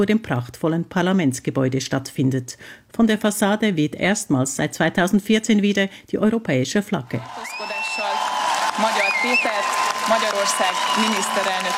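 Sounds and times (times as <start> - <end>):
speech: 0.0 - 7.8, 8.8 - 11.7
large crowd cheering and clapping: 7.2 - 11.7.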